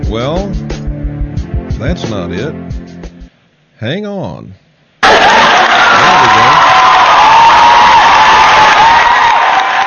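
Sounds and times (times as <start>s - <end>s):
speech: 0.1s - 0.6s, 1.8s - 2.8s, 3.8s - 4.6s
applause sound effect: 5.0s - 9.8s.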